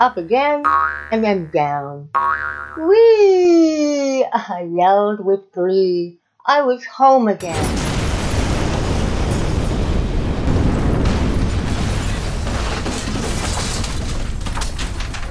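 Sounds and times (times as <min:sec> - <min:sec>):
speech: 0:00.0 - 0:07.8
toy tower crashing to the ground: 0:07.4 - 0:15.3.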